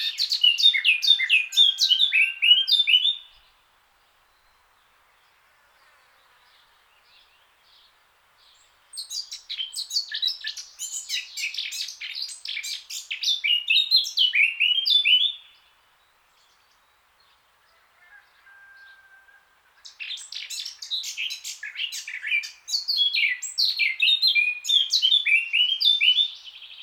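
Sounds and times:
Eurasian blackcap Sylvia atricapilla song: 0.0 - 3.4, 6.6 - 15.7, 19.8 - 26.8.

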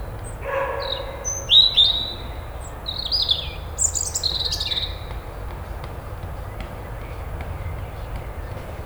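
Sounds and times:
European robin Erithacus rubecula singing: 0.0 - 8.8.

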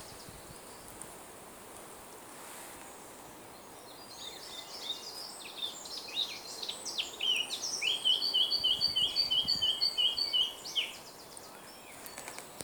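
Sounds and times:
Sylvia atricapilla singing: 3.9 - 12.2.

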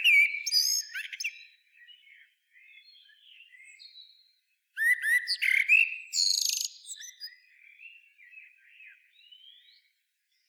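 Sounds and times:
Common blackbird Turdus merula giving warbled song phrases: 0.0 - 10.4.

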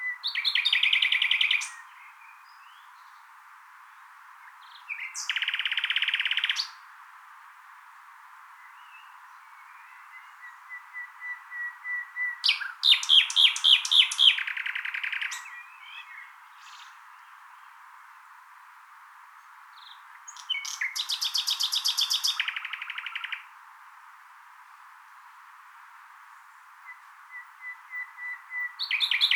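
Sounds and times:
common nightingale singing: 0.0 - 3.2, 4.4 - 6.8, 8.6 - 17.8, 19.8 - 23.5, 26.4 - 29.3.

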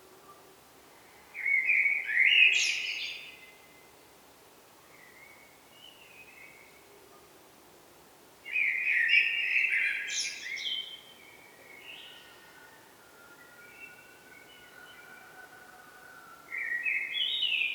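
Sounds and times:
Eurasian blackbird Turdus merula song: 1.0 - 3.9, 8.5 - 17.7.

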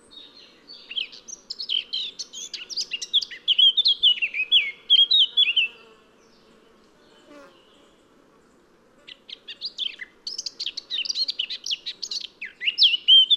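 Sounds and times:
Eurasian blackcap Sylvia atricapilla singing: 0.2 - 5.8, 9.3 - 13.3.

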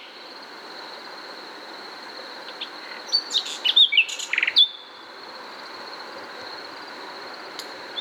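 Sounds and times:
Common nightingale singing, Luscinia megarhynchos: 2.5 - 4.9.

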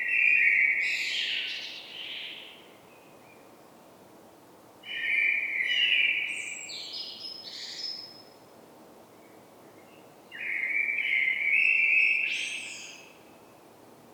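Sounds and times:
common blackbird Turdus merula song with fluted whistled phrases: 0.0 - 3.5, 4.9 - 8.3, 9.2 - 13.6.

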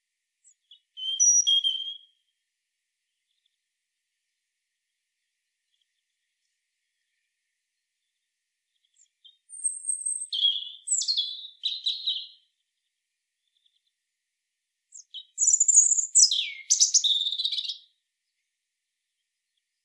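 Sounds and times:
European robin Erithacus rubecula singing high sweet whistles and jumbled trills: 0.4 - 2.3, 9.0 - 12.5, 14.9 - 17.9.

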